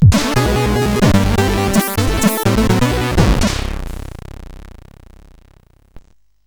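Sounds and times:
incidental SID chip chiptune music on CSG 8580R5: 0.0s - 4.2s.

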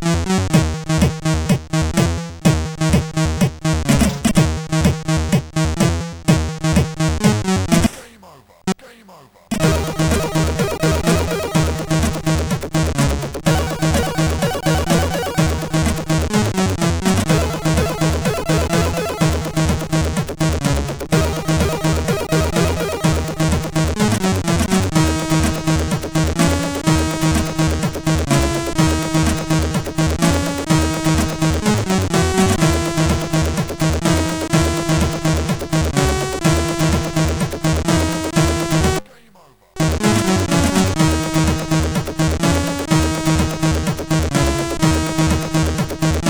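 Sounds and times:
SID 8580R5 chip music: 0.1s - 7.9s, 9.5s - 39.0s, 39.8s - 46.2s.

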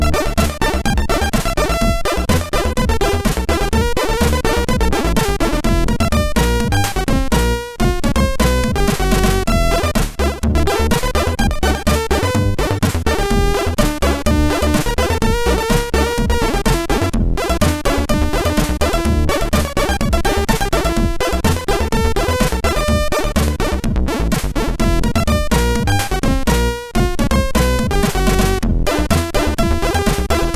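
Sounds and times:
chiptune synthesizer music: 0.0s - 30.5s.

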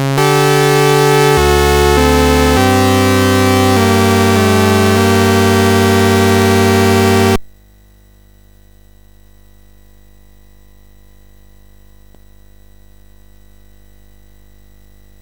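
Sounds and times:
MOS6581R4 SID chip music: 0.2s - 7.4s.

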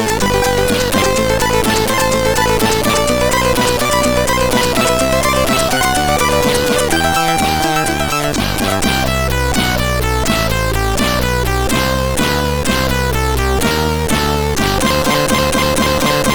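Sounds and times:
chiptune title music on a MOS6581R3 SID chip: 0.0s - 16.3s.

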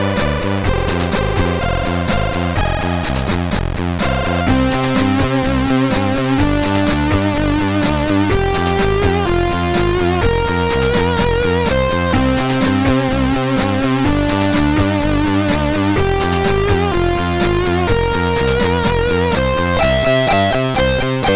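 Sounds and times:
tracker music on CSG8580R5 chip: 0.0s - 21.3s.

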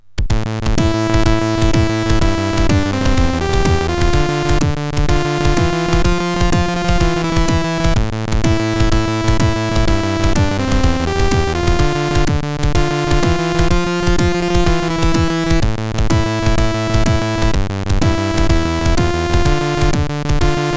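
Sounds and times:
MOS6581R4 SID chip music: 0.3s - 20.7s.

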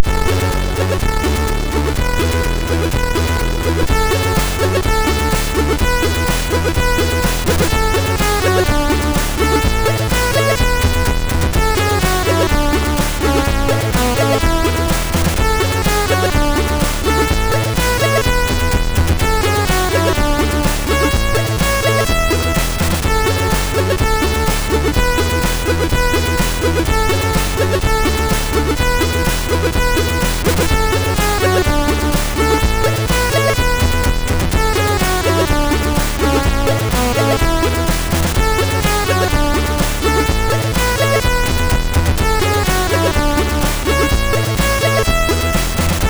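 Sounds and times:
MOS6581R2 funky remix: 0.0s - 46.0s.

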